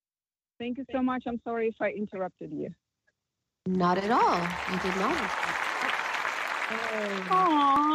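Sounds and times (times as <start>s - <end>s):
speech: 0.6s - 2.8s, 3.6s - 5.5s, 6.7s - 7.9s
loud crowd applause: 3.7s - 7.9s.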